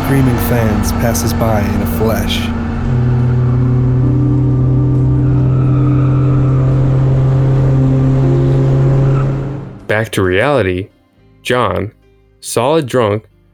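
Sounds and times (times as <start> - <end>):
race car engine roaring at full power: 0.0 - 10.2
speech: 0.1 - 3.1, 9.9 - 13.3.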